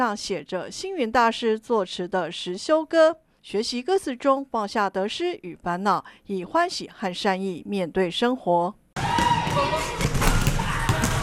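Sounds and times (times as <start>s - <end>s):
speech: 0.0s - 8.8s
basketball dribbled on a court by young novice monks: 9.0s - 11.2s.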